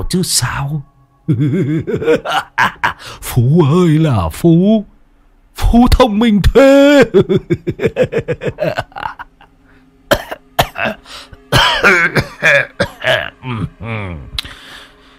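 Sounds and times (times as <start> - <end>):
speech: 0.0 - 4.9, 5.6 - 9.1, 10.8 - 14.3
laughter: 1.3 - 3.1, 7.0 - 9.5
person coughing: 10.1 - 14.2.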